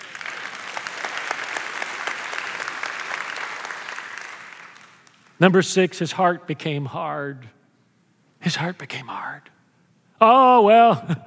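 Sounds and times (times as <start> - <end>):
audience applause: 0.0 - 5.3
speech: 5.4 - 7.6, 8.4 - 9.6, 10.2 - 11.2.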